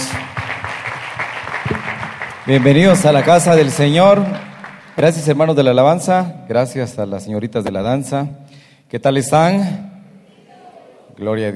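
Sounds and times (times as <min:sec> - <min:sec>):
audience clapping: 0:00.0 - 0:06.0
speech: 0:02.4 - 0:04.4, 0:05.0 - 0:09.8, 0:11.2 - 0:11.5.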